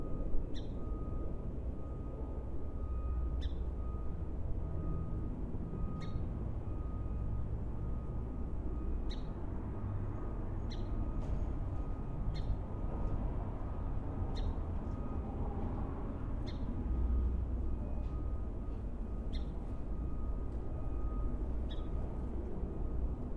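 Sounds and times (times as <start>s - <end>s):
low rumble of traffic in a backyard: 0.0s - 23.3s
wind in a backyard: 0.0s - 23.3s
short sharp bird chirps: 10.7s - 11.0s, 14.3s - 14.6s, 16.4s - 16.7s, 19.3s - 19.6s, 21.7s - 22.0s.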